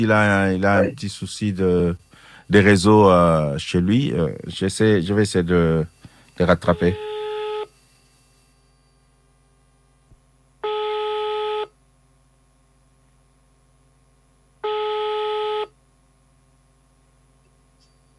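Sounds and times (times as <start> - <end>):
speech: 0.0 - 7.1
faint steady phone line hum: 0.0 - 18.1
incoming-call electronic tones on a phone line: 6.4 - 7.7, 10.6 - 11.7, 14.6 - 15.7.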